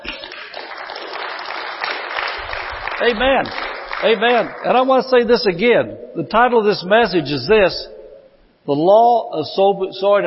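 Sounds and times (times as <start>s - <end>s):
audience clapping: 0.0s - 4.9s
speech: 3.0s - 7.9s, 8.7s - 10.2s.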